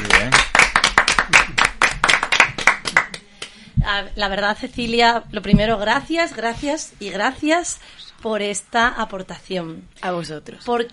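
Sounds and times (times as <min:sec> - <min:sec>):
live applause: 0:00.0 - 0:03.6
speech: 0:03.9 - 0:10.9.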